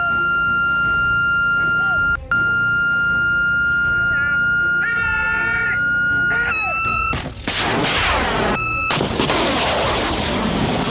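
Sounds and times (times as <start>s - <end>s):
missile launcher target lock-on tone: 0.0s - 7.3s, 8.5s - 9.2s
missile launch roaring blast: 7.1s - 10.9s.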